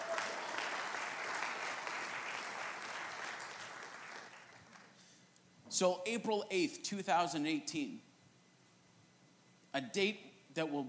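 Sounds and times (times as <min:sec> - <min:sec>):
audience applauding with hand claps: 0:00.0 - 0:05.0
speech: 0:05.7 - 0:08.1, 0:09.8 - 0:10.8.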